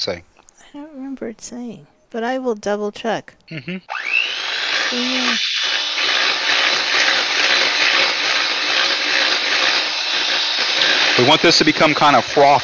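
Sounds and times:
speech: 0.0 - 4.3, 4.9 - 5.9, 11.2 - 12.6
person murmuring: 3.5 - 3.9
electric hand mixer beating a mixture on high speed in a bowl: 3.8 - 12.6.

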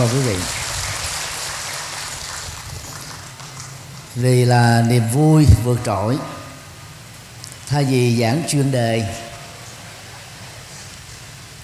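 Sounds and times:
speech: 0.0 - 0.6, 4.2 - 6.4, 7.7 - 9.2
audience applause: 0.0 - 4.1.

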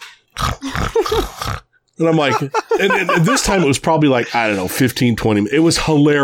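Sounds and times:
voice imitating loud snoring: 0.4 - 1.7
speech: 1.0 - 6.2
laughter: 2.0 - 4.7.

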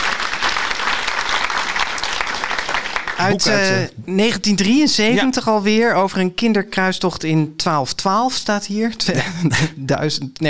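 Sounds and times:
applause: 0.0 - 3.8
speech: 3.2 - 10.4
laughter: 9.1 - 9.9.

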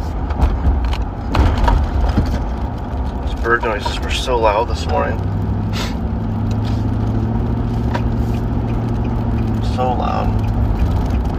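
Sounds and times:
car driving: 0.0 - 11.3
speech: 3.4 - 5.4.

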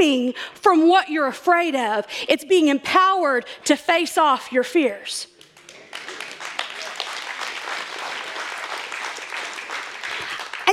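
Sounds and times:
speech: 0.0 - 5.3
audience applause: 5.5 - 10.7.

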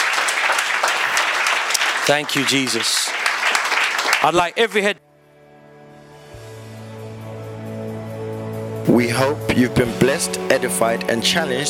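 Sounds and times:
audience clapping: 0.0 - 5.0
speech: 2.1 - 3.2, 4.2 - 5.1, 9.0 - 11.6.

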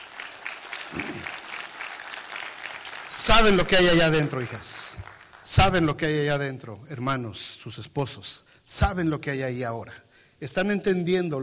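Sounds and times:
audience applause: 0.0 - 5.8
speech: 3.1 - 11.4.

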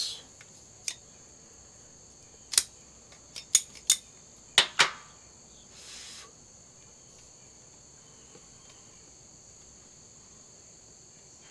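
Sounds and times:
cutter clipping the cap off a Shady Moose Toro cigar: 2.5 - 4.1.

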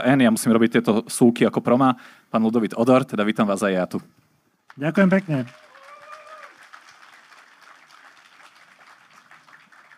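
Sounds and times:
speech: 0.0 - 4.2, 4.8 - 5.6
audience applause: 4.7 - 9.9.

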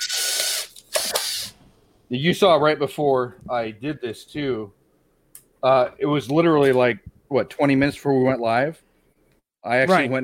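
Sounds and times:
drill: 0.0 - 1.5
speech: 2.1 - 4.8, 5.6 - 8.8, 9.6 - 10.2.

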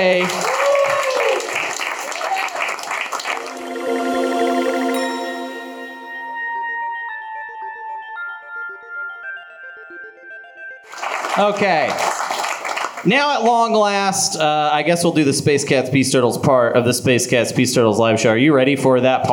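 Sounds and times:
speech: 0.0 - 0.5, 11.4 - 12.1, 13.0 - 19.3
live audience applause: 0.0 - 4.9, 10.9 - 13.1.

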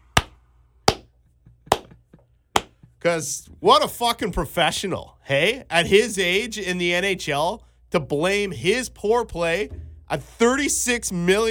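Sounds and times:
slow hand claps: 0.2 - 2.9
speech: 3.0 - 11.4.

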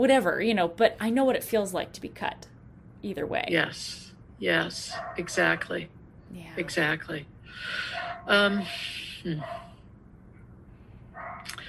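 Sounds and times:
speech: 0.0 - 9.7
dog barking outside: 4.9 - 5.6, 7.9 - 8.4, 9.4 - 9.8, 11.2 - 11.5
dog yipping: 11.2 - 11.5.

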